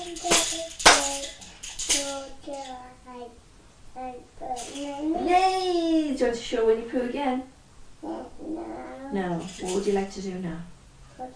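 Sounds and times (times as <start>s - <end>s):
child clapping hands: 0.0s - 1.3s
speech: 0.2s - 11.3s.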